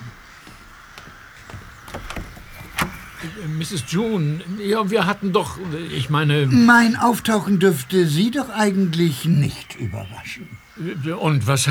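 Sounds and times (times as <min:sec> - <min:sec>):
footsteps coming down creaky stairs: 0:00.0 - 0:08.8
speech: 0:03.2 - 0:11.6.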